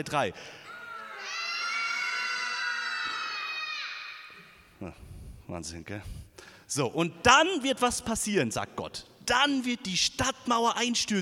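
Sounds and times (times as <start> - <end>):
speech: 0.0 - 1.4, 4.8 - 11.2
group of children screaming together: 0.6 - 4.5.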